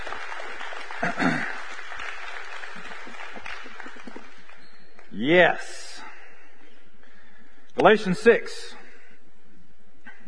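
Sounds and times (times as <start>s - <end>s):
audience clapping: 0.0s - 5.1s
speech: 1.0s - 1.5s, 5.2s - 5.8s, 7.8s - 8.8s.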